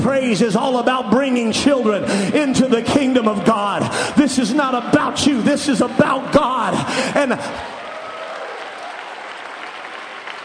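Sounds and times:
speech: 0:00.1 - 0:07.8
audience clapping: 0:06.6 - 0:10.4.

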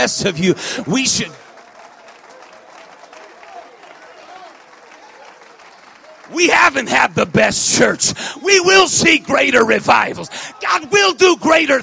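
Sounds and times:
speech: 0:00.0 - 0:01.4, 0:06.4 - 0:11.8
audience clapping hands: 0:00.0 - 0:07.9.

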